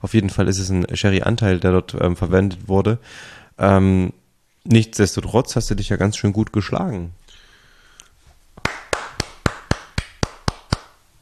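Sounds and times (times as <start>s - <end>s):
speech: 0.0s - 7.2s
one-handed clap: 8.6s - 11.0s.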